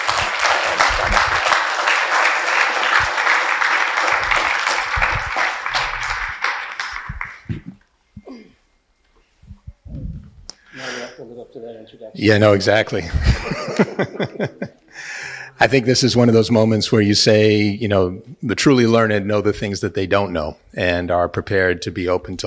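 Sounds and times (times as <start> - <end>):
audience applause welcoming two professors: 0.0 - 7.8
laughter: 0.0 - 7.8, 12.9 - 15.8
speech: 11.9 - 14.7, 15.6 - 22.4.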